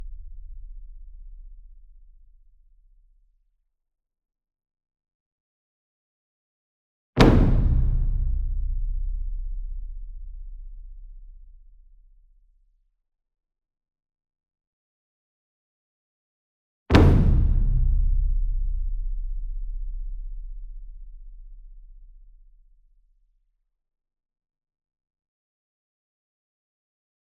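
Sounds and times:
60 inch taiko drum flam with soft beater: 0:07.2 - 0:10.0, 0:16.9 - 0:19.8.

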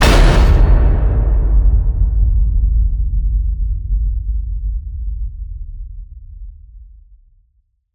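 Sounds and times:
massive cinematic hits: 0:00.0 - 0:04.1.

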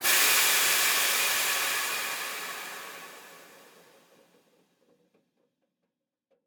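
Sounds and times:
Mack semi truck: 0:00.0 - 0:04.1.

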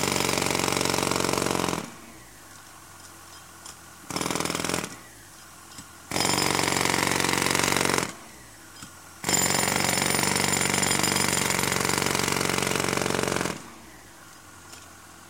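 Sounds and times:
jackhammer hammering at construction: 0:00.0 - 0:02.0, 0:04.1 - 0:05.0, 0:06.1 - 0:08.2, 0:09.2 - 0:13.7.

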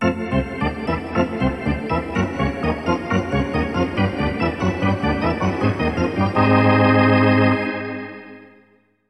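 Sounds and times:
hockey arena organ: 0:00.0 - 0:08.7.

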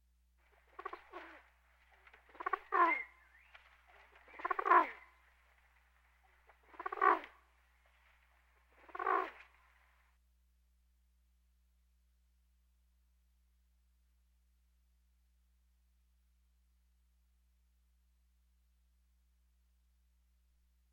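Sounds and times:
birds: 0:00.4 - 0:10.1.

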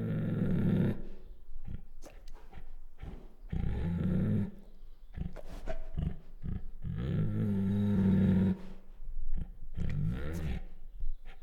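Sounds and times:
female Bengal tiger growling: 0:00.0 - 0:10.8.

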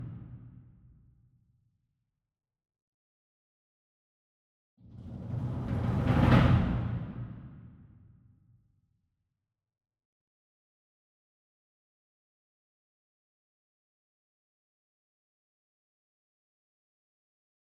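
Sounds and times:
66 inch single drum roll with soft beater: 0:05.0 - 0:07.6.

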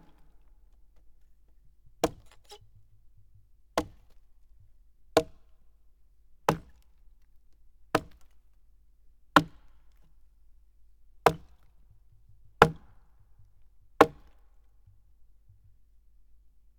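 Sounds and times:
axe chopping: 0:02.0 - 0:02.7, 0:03.8 - 0:04.1, 0:06.5 - 0:06.9, 0:08.0 - 0:08.3, 0:09.4 - 0:09.7, 0:11.3 - 0:11.7, 0:12.6 - 0:13.0, 0:14.0 - 0:14.4.

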